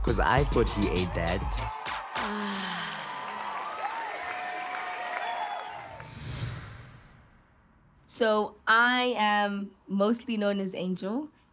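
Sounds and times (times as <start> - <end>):
speech: 0.0 - 2.7, 8.2 - 11.4
crowd applauding: 0.0 - 6.2.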